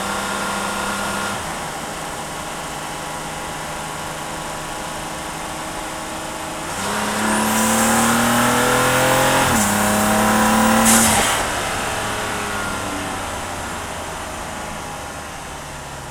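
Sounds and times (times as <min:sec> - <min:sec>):
car engine recorded onboard: 0:00.0 - 0:16.0
car gearshifts while driving: 0:06.6 - 0:11.8.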